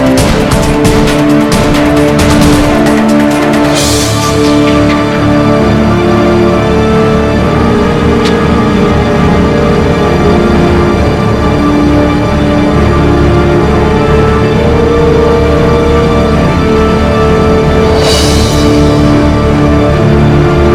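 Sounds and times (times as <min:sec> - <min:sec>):
samurai ambience: 0:00.0 - 0:20.7.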